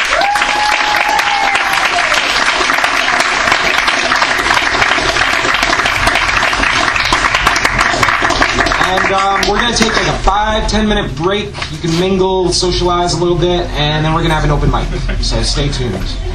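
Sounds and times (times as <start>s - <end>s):
audience applause: 0.0s - 10.2s
speech: 9.2s - 16.3s.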